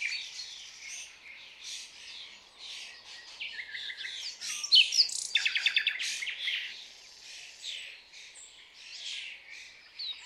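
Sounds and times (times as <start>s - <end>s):
common nightingale Luscinia megarhynchos song of rapid repeated notes and buzzy trills: 0.0s - 6.7s.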